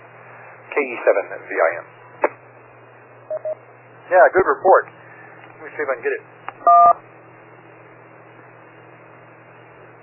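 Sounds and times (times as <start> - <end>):
faint hum: 0.0 - 10.0
speech: 0.8 - 2.0, 4.1 - 5.0, 5.6 - 7.0
DTMF tone for digit 1 on a ham radio transmission: 3.3 - 3.6.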